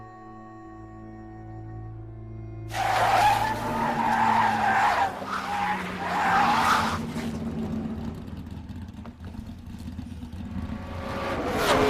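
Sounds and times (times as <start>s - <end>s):
race car engine noise: 2.6s - 11.8s
race car tire screech at the end of a race: 2.6s - 11.8s.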